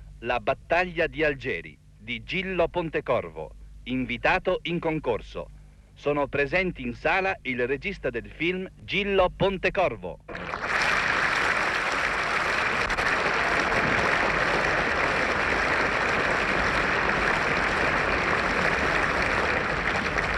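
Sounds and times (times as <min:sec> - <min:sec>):
speech: 0:00.2 - 0:10.6
audience applause in cinema hall: 0:10.3 - 0:20.3.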